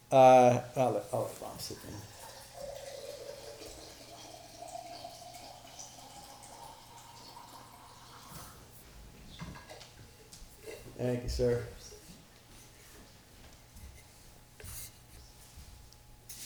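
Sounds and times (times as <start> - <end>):
speech: 0.1 - 2.2, 11.0 - 11.8
drink pouring into a glass: 1.7 - 8.6.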